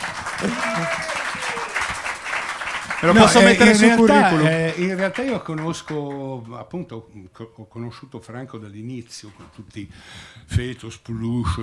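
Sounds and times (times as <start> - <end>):
audience applause: 0.0 - 6.4
speech: 0.4 - 1.1, 3.0 - 11.6.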